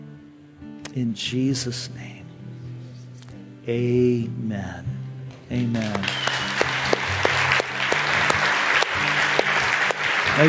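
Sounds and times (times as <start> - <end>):
speech: 1.0 - 2.2, 3.7 - 6.3
crowd applauding: 5.6 - 10.4.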